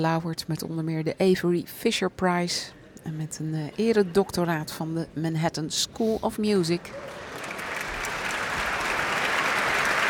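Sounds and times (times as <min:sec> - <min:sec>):
speech: 0:00.0 - 0:07.3
concert audience applause: 0:07.0 - 0:10.0.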